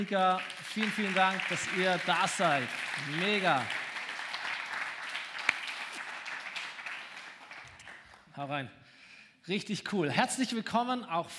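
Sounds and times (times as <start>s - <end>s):
speech: 0.0s - 3.8s, 8.4s - 8.8s, 9.4s - 11.3s
audience applause: 0.0s - 8.2s.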